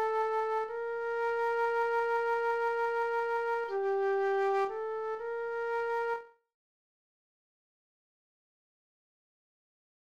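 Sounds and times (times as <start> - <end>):
flute: 0.0 - 6.5.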